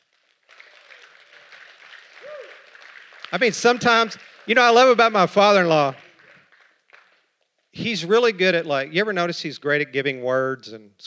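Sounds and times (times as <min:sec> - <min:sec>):
audience clapping: 0:00.0 - 0:07.5
rising-and-falling whoop or cheer: 0:02.2 - 0:02.7
speech: 0:03.3 - 0:06.0, 0:07.8 - 0:11.0.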